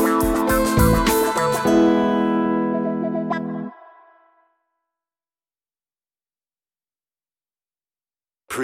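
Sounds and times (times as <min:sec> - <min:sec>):
on-hold music: 0:00.0 - 0:04.6.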